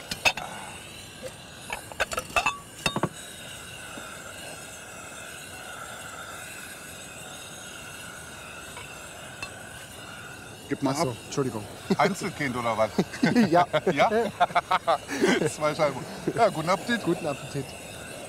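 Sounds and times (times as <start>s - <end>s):
plates and dishes clinking as they are set on a table for breakfast: 1.8s - 3.1s
speech: 10.7s - 17.8s
laughter: 11.8s - 16.7s.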